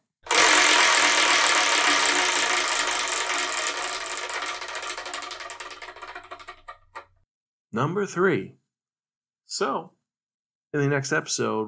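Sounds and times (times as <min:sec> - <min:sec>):
digital wheel spinning to pick a manga: 0:00.3 - 0:07.0
speech: 0:07.8 - 0:08.6, 0:09.5 - 0:10.0, 0:10.7 - 0:11.6.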